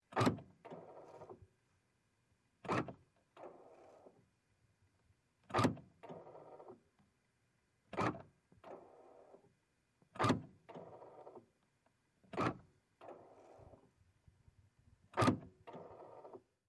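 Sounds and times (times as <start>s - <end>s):
powered car door locks: 0.1s - 0.9s, 2.6s - 3.0s, 5.5s - 6.2s, 8.0s - 8.2s, 10.2s - 10.5s, 15.2s - 15.9s.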